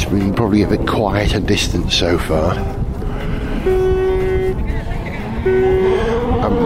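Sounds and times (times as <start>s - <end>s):
speech: 0.1s - 2.9s, 5.4s - 6.6s
racing cars roaring past on a rally stage: 2.5s - 6.6s.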